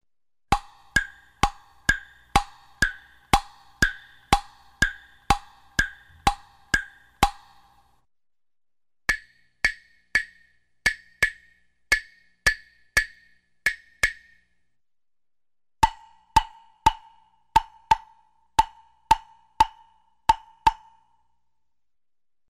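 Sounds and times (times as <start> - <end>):
melody tapped on wooden blocks: 0.5 - 7.8, 9.1 - 14.4, 15.8 - 21.1.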